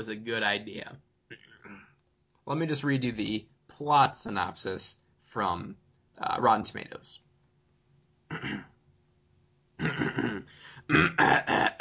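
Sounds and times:
speech: 0:00.0 - 0:01.4, 0:02.5 - 0:07.2, 0:08.3 - 0:08.7, 0:09.8 - 0:11.7
person hacking cough: 0:08.3 - 0:08.8, 0:09.8 - 0:11.7.

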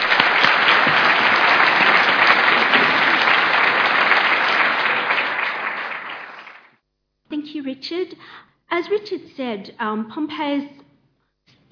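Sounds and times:
applause: 0:00.0 - 0:06.8
speech: 0:07.6 - 0:10.8.

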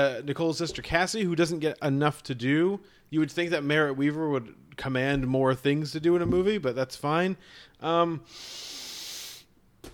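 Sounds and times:
speech: 0:00.0 - 0:08.9
deep breathy hissing intake: 0:07.4 - 0:09.6.

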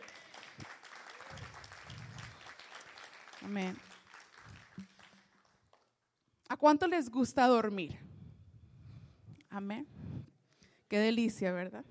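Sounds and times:
audience applause: 0:00.0 - 0:05.6
speech: 0:03.4 - 0:03.9, 0:06.6 - 0:08.0, 0:09.6 - 0:10.0, 0:10.9 - 0:11.8.

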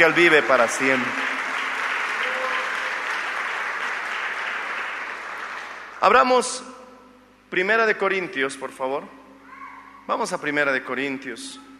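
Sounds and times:
speech: 0:00.0 - 0:01.4, 0:06.0 - 0:06.7, 0:07.5 - 0:09.2, 0:10.1 - 0:11.7
audience applause: 0:00.0 - 0:06.0.

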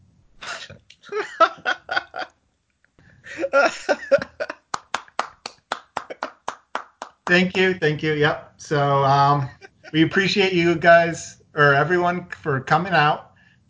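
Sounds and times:
laughter: 0:00.4 - 0:02.3, 0:03.3 - 0:04.7, 0:05.8 - 0:06.5, 0:09.4 - 0:10.2
live audience clapping: 0:04.6 - 0:07.6
speech: 0:07.3 - 0:13.3.

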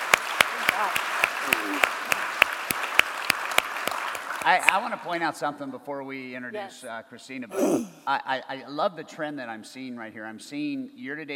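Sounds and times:
applause: 0:00.0 - 0:05.2
speech: 0:04.4 - 0:11.3.

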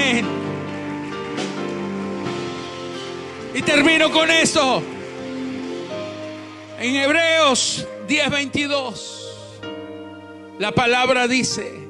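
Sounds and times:
audience applauding: 0:00.0 - 0:08.5
sustained musical tones: 0:00.0 - 0:10.6
speech: 0:03.6 - 0:04.9, 0:06.8 - 0:09.2, 0:10.6 - 0:11.8.

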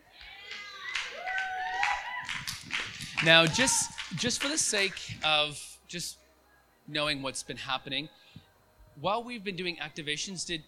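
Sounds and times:
whoops and cheering voices: 0:00.1 - 0:04.3
audience clapping: 0:00.2 - 0:05.4
speech: 0:03.2 - 0:06.2, 0:06.9 - 0:08.2, 0:09.0 - 0:10.6.

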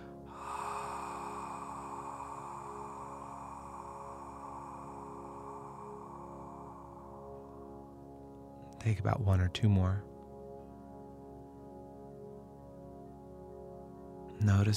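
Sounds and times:
slow exhale through a constricted throat as a ha sound: 0:00.0 - 0:08.7
speech: 0:08.8 - 0:10.1, 0:14.5 - 0:14.7.

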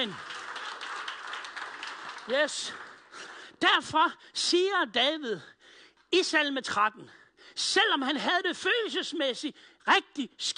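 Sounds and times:
speech: 0:00.0 - 0:00.3, 0:02.3 - 0:02.9, 0:03.6 - 0:10.5
audience clapping: 0:00.0 - 0:03.8.

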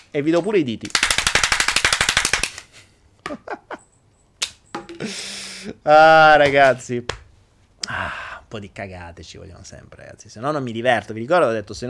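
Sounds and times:
speech: 0:00.1 - 0:01.1, 0:05.0 - 0:07.2, 0:07.9 - 0:11.8
applause sound effect: 0:01.8 - 0:02.5.

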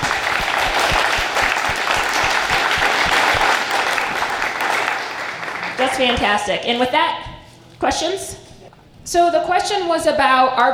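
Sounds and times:
audience applause: 0:00.0 - 0:06.2
speech: 0:05.9 - 0:08.4, 0:09.0 - 0:10.7.

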